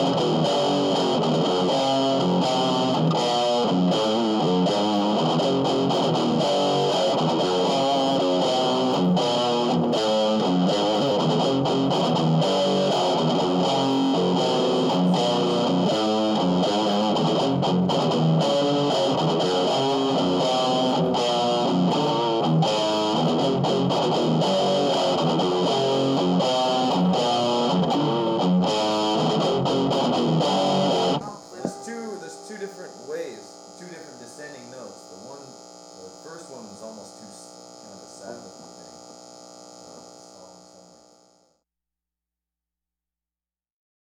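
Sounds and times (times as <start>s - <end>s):
musical riff: 0.1s - 37.1s.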